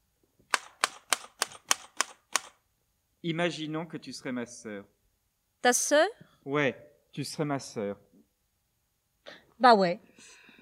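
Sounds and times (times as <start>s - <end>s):
typewriter clacking: 0.5s - 2.5s
speech: 3.2s - 5.0s, 5.6s - 8.1s, 9.6s - 10.4s.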